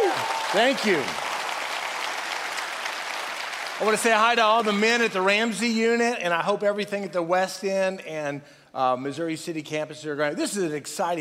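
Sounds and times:
hand clapping applause: 0.0s - 5.4s
speech: 0.5s - 1.2s, 3.8s - 11.1s.

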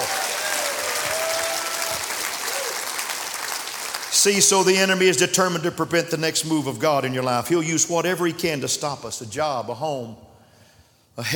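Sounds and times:
audience clapping: 0.0s - 4.9s
speech: 4.2s - 10.3s, 11.2s - 11.3s.

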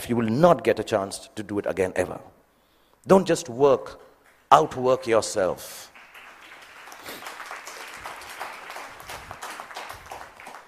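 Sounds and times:
speech: 0.0s - 2.4s, 3.0s - 5.9s
sparse clapping from parents: 6.0s - 10.6s.

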